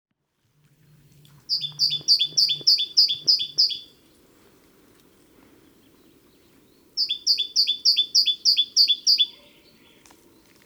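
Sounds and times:
great tit Parus major singing: 1.5s - 4.0s, 5.8s - 10.6s.

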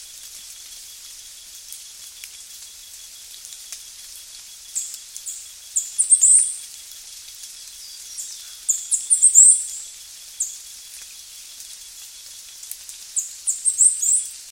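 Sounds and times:
steady background hiss: 0.0s - 14.5s
bird chirping: 4.8s - 6.6s, 7.7s - 10.6s, 13.2s - 14.4s.

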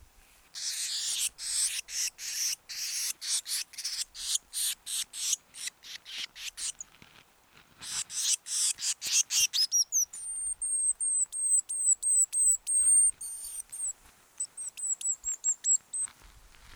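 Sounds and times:
Eurasian blue tit churring: 0.6s - 6.8s, 7.8s - 16.1s.

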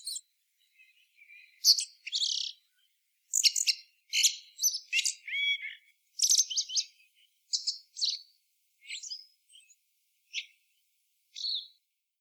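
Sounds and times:
Eurasian blackbird twittering: 0.0s - 2.6s, 3.3s - 8.2s, 8.8s - 10.5s, 11.4s - 11.7s.

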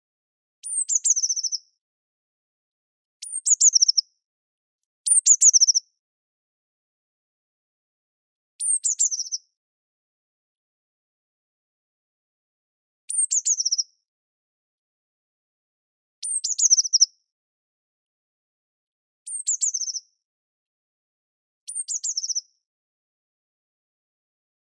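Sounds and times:
Eurasian blue tit singing: 0.6s - 1.7s, 3.2s - 4.0s, 5.1s - 5.8s, 8.6s - 9.5s, 13.1s - 13.9s, 16.2s - 17.1s, 19.3s - 20.0s, 21.7s - 22.4s.

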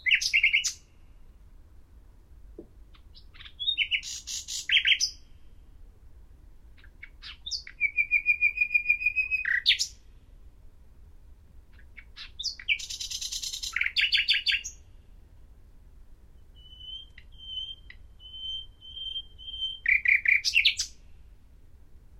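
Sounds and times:
common nightingale singing: 0.0s - 1.0s, 2.9s - 5.6s, 6.8s - 10.0s, 11.8s - 15.0s, 16.4s - 21.1s.

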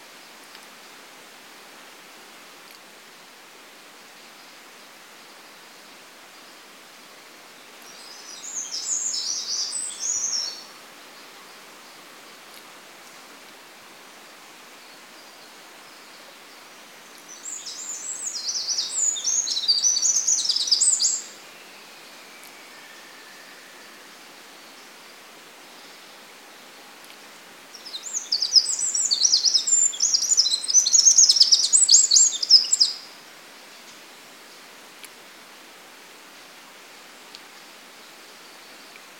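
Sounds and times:
quiet hiss: 0.0s - 39.1s
Eurasian wren song trills: 17.1s - 26.2s, 27.7s - 33.1s.

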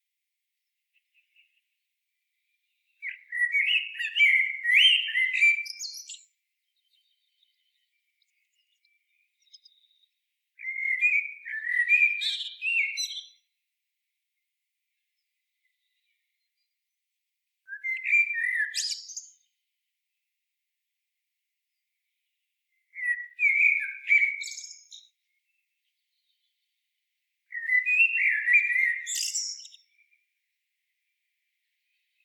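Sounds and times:
common blackbird singing: 0.9s - 13.5s, 17.7s - 19.6s, 22.7s - 26.8s, 27.5s - 30.2s.

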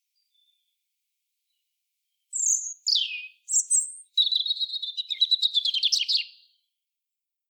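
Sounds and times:
European robin singing: 2.2s - 6.6s.

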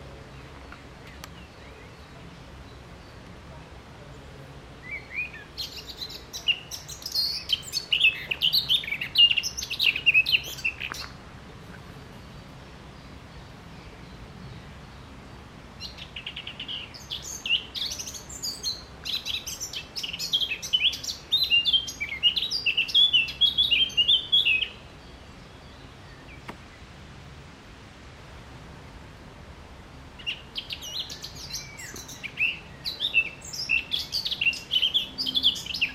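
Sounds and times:
Eurasian blackcap warbling song: 4.8s - 11.2s, 12.1s - 26.8s, 30.2s - 35.9s.

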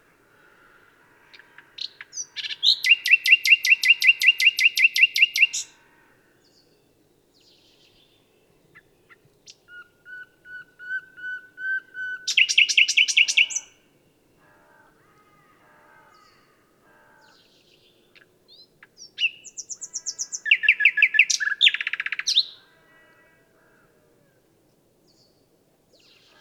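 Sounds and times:
common nightingale singing: 1.4s - 5.7s, 6.4s - 13.8s, 17.3s - 22.6s.

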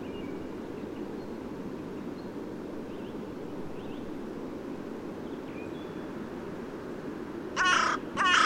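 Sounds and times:
carrion crow cawing, Corvus corone: 7.6s - 8.4s.

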